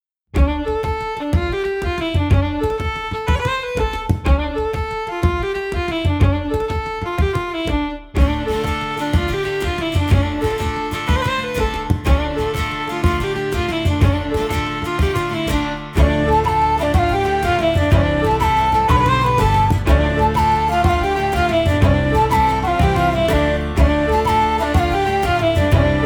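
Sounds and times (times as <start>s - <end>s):
St Patrick's music: 0.3s - 26.0s.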